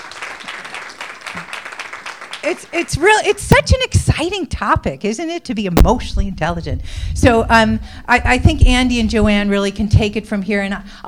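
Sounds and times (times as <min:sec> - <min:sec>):
audience applause: 0:00.0 - 0:03.4
speech: 0:02.4 - 0:11.0.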